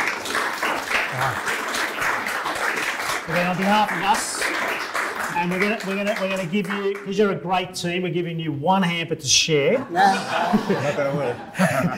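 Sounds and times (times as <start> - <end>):
round of applause: 0.0 - 7.3
speech: 1.2 - 1.6, 3.3 - 11.9
laughter: 9.9 - 11.9.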